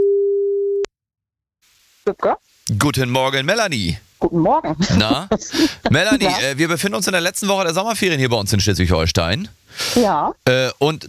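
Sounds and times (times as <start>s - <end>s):
telephone line tone: 0.0s - 0.9s
speech: 2.1s - 11.0s.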